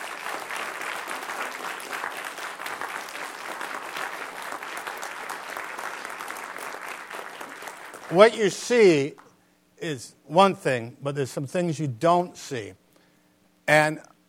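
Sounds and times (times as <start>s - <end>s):
audience applause: 0.0s - 8.5s
speech: 8.1s - 9.2s, 9.8s - 12.8s, 13.7s - 14.1s.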